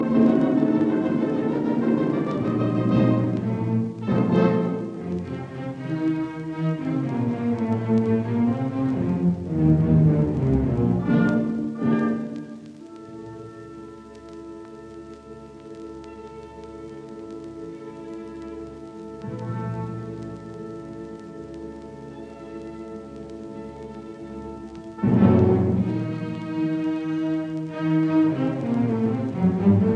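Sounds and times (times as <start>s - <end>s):
choral symphony finale: 0.0s - 12.6s, 21.8s - 29.9s.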